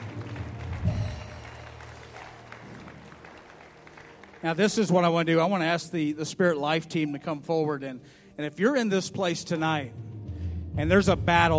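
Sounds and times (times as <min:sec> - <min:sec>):
audience clapping hands: 0:00.0 - 0:05.6
speech: 0:04.4 - 0:10.0, 0:10.8 - 0:11.5.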